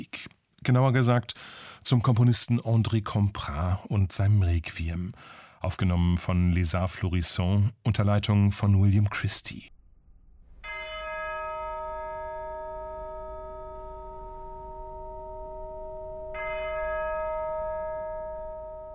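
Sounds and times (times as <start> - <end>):
speech: 0.7 - 9.8
church bell strokes: 10.4 - 18.9.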